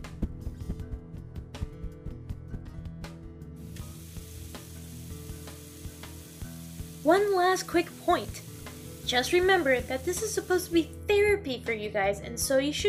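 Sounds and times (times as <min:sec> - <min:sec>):
hot smoking object sizzling after being doused in water: 0:03.6 - 0:11.0
speech: 0:07.1 - 0:08.5, 0:09.1 - 0:12.8.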